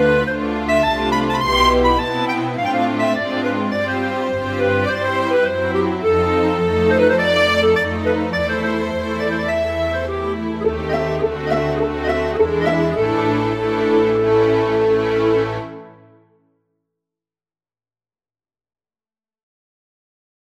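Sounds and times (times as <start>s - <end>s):
orchestra: 0.0s - 16.3s.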